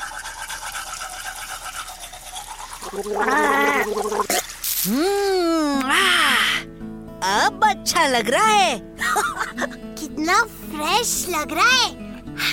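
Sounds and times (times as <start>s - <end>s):
tooth brushing with toothpaste in a cartoon: 0.0s - 4.4s
mouth rinsing in a cartoon: 0.0s - 6.0s
speech: 2.8s - 12.5s.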